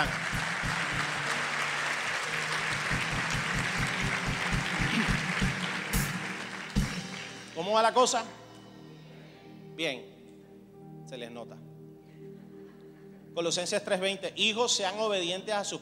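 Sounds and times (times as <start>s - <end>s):
audience applause: 0.0s - 7.6s
speech: 7.6s - 8.4s, 9.8s - 10.1s, 11.1s - 11.7s, 13.4s - 15.8s.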